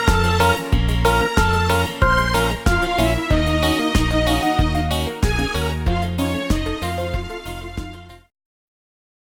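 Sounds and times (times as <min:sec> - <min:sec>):
karaoke singing: 0:00.0 - 0:07.2.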